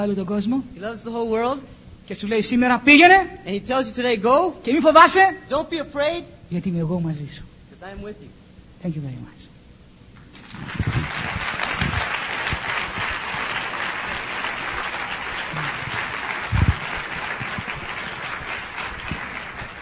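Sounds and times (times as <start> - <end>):
speech: 0.0 - 9.5
audience clapping: 10.2 - 19.8.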